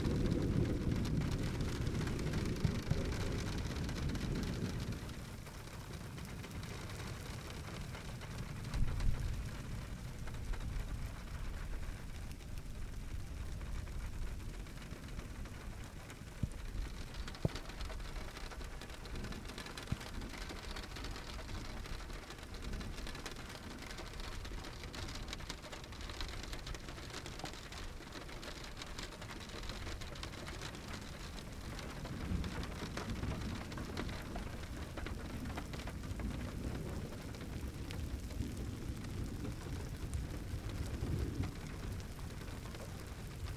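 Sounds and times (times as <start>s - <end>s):
heavy low thunder rumble: 0.0s - 43.5s
summer thunderstorm rain in Idanha-a-Nova, Portugal: 0.0s - 43.5s.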